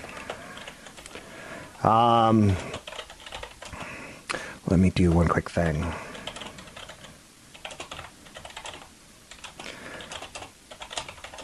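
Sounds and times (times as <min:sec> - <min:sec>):
typing on a computer keyboard: 0:00.1 - 0:01.1, 0:02.5 - 0:03.9, 0:05.0 - 0:11.4
speech: 0:01.8 - 0:02.7, 0:04.7 - 0:06.0.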